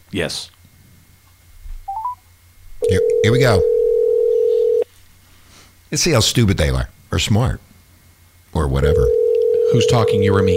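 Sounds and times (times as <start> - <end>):
low hum: 0.0 - 10.5
speech: 0.1 - 0.6, 2.9 - 3.8, 5.9 - 7.7, 8.5 - 10.5
telephone dialing tones: 2.8 - 4.8, 9.1 - 10.5.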